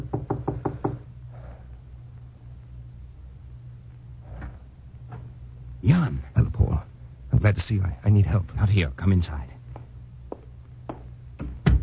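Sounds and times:
knocking on a door: 0.0s - 1.0s
speech: 5.8s - 6.6s, 7.5s - 9.5s.

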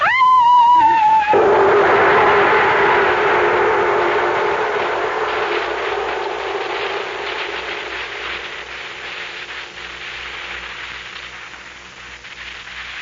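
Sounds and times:
person imitating a ghostly scream: 0.0s - 3.2s
rushing rumbling noise: 1.2s - 12.9s.

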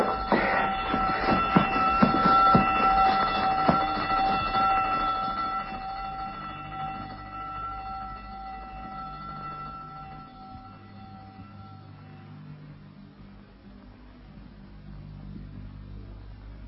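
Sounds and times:
prison alarm bell ringing: 0.0s - 12.8s.

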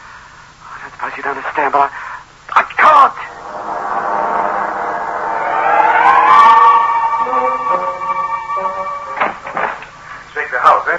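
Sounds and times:
speech: 1.0s - 2.0s
emergency vehicle siren: 3.3s - 10.2s.

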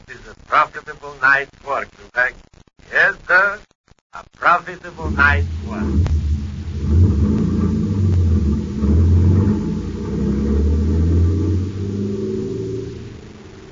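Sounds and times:
speech: 0.1s - 6.1s
heavy truck engine rumbling while driving: 4.8s - 13.7s.

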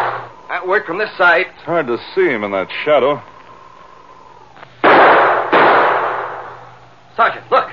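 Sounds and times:
gunshots in a rocky mountain standoff: 0.0s - 0.3s, 4.8s - 6.7s
speech: 0.6s - 3.3s.

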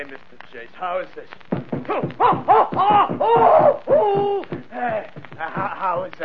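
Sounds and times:
speech: 0.0s - 6.2s
pounding a wrestling mat: 1.4s - 6.2s
man screaming: 2.0s - 5.0s.

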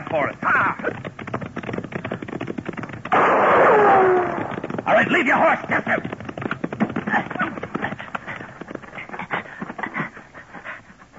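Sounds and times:
speech: 0.1s - 1.3s, 5.0s - 6.2s
gunshots fired at riders: 3.1s - 5.4s.

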